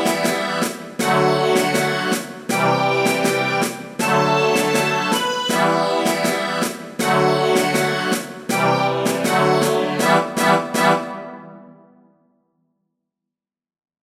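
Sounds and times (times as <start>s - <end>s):
drum: 0.0s - 11.1s.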